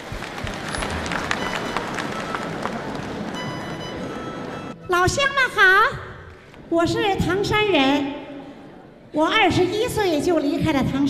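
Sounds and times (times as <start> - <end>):
audience applause: 0.0 - 4.7
speech: 4.9 - 6.0, 6.7 - 8.2, 9.1 - 11.0.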